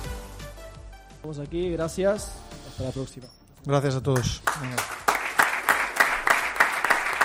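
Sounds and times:
speech: 0:01.3 - 0:04.9
applause at the end of a football press conference: 0:04.1 - 0:07.2.

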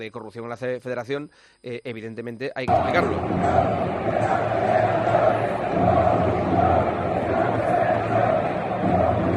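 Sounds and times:
speech: 0:00.0 - 0:09.3
stadium crowd chanting protest slogans: 0:02.7 - 0:09.3.

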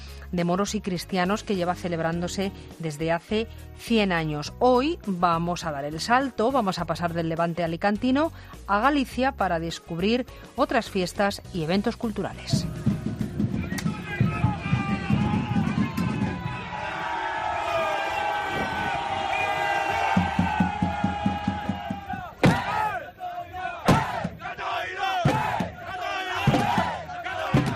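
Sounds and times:
speech: 0:00.3 - 0:12.9
crowd shouting battle cries at Viking landing: 0:12.6 - 0:27.7
whoops and yells: 0:12.6 - 0:27.7.

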